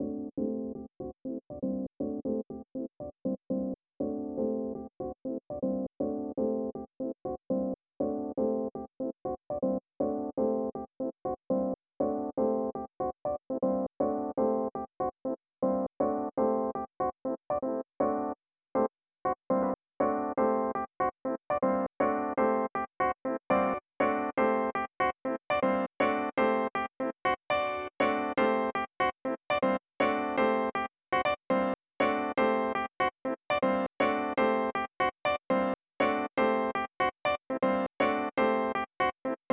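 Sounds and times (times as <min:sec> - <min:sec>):
piano: 0:00.0 - 0:39.5.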